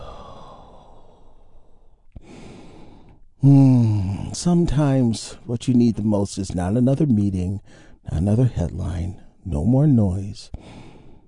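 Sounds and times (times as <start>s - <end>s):
deep breath released during a guided healing-breath exercise: 0.0s - 2.8s
speech: 3.4s - 10.8s.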